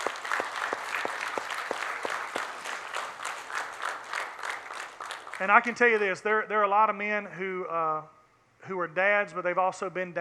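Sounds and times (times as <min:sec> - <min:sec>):
audience round of applause: 0:00.0 - 0:05.8
speech: 0:05.4 - 0:10.1.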